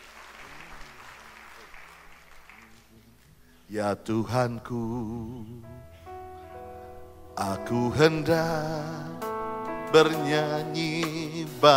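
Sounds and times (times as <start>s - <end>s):
audience applauding: 0.0s - 3.3s
speech: 3.7s - 5.9s, 7.4s - 9.3s, 9.9s - 11.7s.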